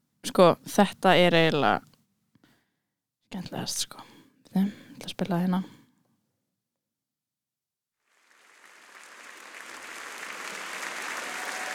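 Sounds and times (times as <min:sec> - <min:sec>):
speech: 0:00.4 - 0:01.9, 0:03.3 - 0:05.8
group of people clapping live: 0:08.1 - 0:11.7.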